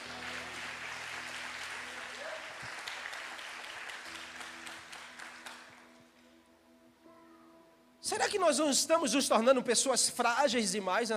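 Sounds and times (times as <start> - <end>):
audience applauding: 0.0 - 6.0
speech: 8.1 - 11.1.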